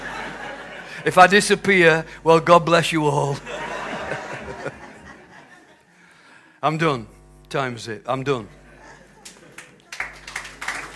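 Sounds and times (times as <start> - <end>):
laughter: 0.0 - 1.2, 3.3 - 6.0, 8.5 - 10.9
steady low hum: 0.0 - 10.9
speech: 1.0 - 3.7, 6.6 - 8.6
audience clapping in a large room: 9.2 - 10.9.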